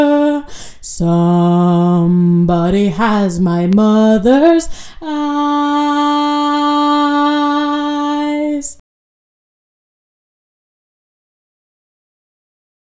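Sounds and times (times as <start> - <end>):
vocal stems: 0.0 - 8.8.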